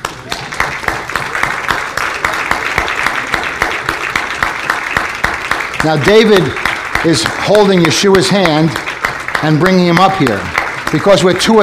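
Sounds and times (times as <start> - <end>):
audience applause: 0.0 - 11.6
speech: 5.8 - 11.6.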